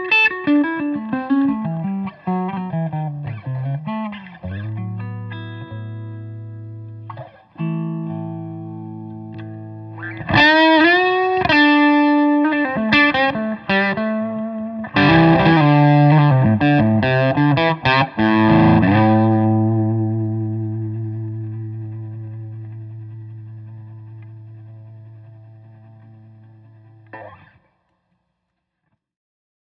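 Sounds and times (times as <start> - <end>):
1966 Gibson ES-335 semi hollow all maple electric guitar: 0.0 - 27.8.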